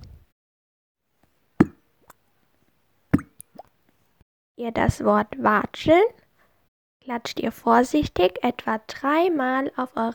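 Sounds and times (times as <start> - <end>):
small glass dipped into a water glass: 1.6 - 2.2, 3.2 - 3.7
speech: 4.6 - 6.2, 7.1 - 10.1.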